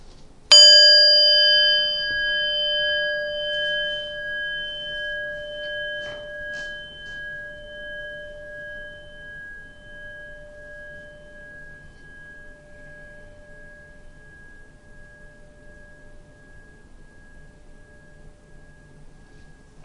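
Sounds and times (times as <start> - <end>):
meditation bell ringing: 0.5 - 19.8.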